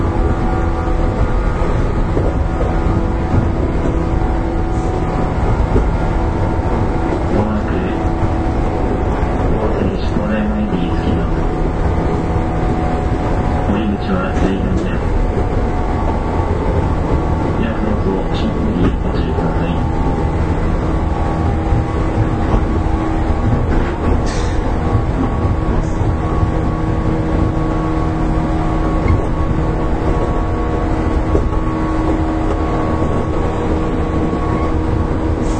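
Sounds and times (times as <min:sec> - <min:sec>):
415 series electric train running on a local service: 0:00.0 - 0:35.5.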